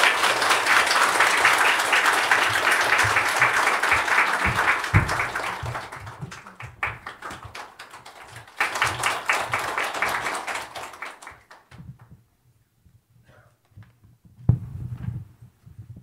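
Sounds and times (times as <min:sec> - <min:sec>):
audience applause welcoming the speaker: 0:00.0 - 0:11.8.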